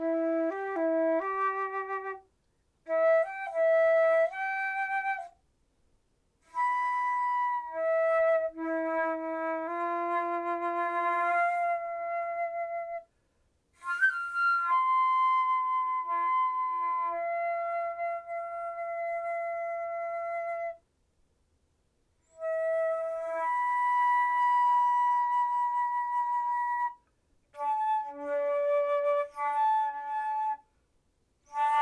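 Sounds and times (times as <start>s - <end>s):
flute: 0.0s - 5.4s, 6.4s - 20.9s, 22.2s - 30.8s, 31.4s - 31.8s.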